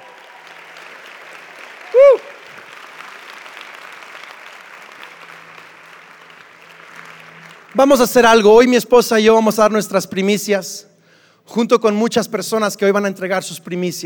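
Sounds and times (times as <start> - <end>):
audience applause: 0.0 - 8.7
speech: 7.8 - 10.9, 11.5 - 14.0.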